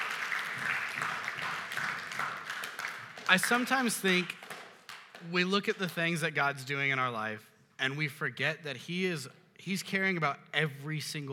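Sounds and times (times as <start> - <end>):
faint audience applause in a room: 0.0 - 5.3
speech: 3.3 - 4.4, 5.2 - 11.3.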